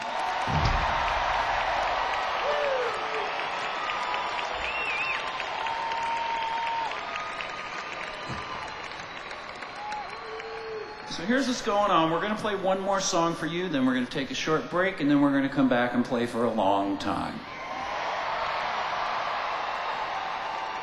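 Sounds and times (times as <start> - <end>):
audience applause: 0.0 - 12.2, 17.5 - 20.8
speech: 11.2 - 17.5.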